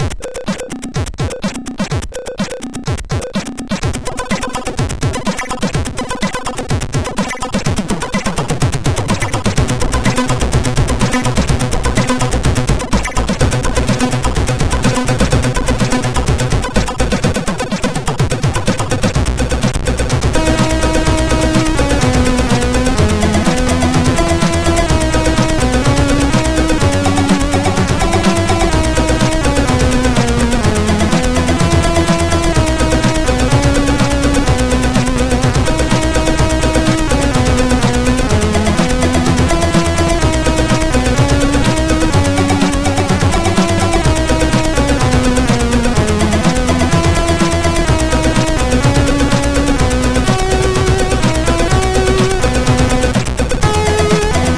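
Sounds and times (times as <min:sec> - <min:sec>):
chiptune music on MOS6581 SID chip: 0:00.0 - 0:54.5.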